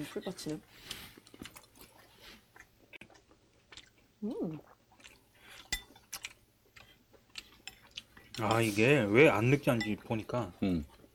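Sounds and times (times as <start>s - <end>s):
speech: 0.0s - 1.5s, 4.2s - 4.7s, 8.4s - 11.0s
chewing rice while eating: 0.5s - 8.9s.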